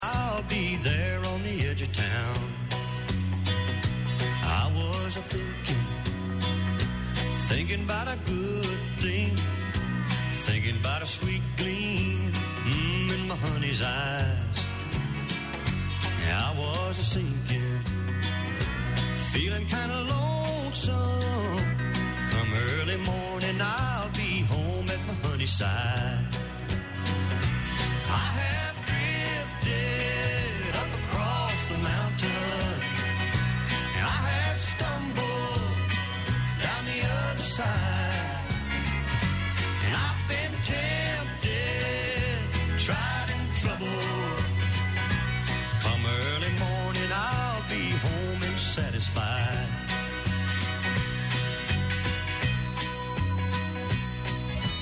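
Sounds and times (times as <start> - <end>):
country music: 0.0 - 54.8.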